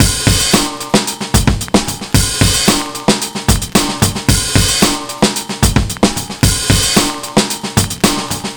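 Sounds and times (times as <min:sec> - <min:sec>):
breakbeat drums: 0:00.0 - 0:08.5.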